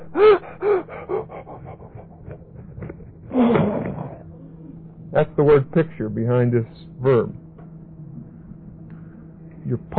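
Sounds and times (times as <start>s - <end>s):
voice imitating someone gasping for breath in cigar smoke: 0.0s - 4.2s
speech: 0.1s - 0.6s, 5.3s - 7.4s, 9.7s - 9.9s.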